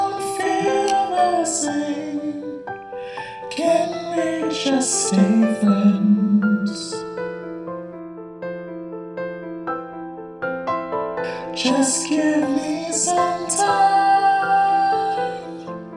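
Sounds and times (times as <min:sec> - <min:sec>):
pop group with vocals: 0:00.0 - 0:07.5, 0:11.2 - 0:15.9.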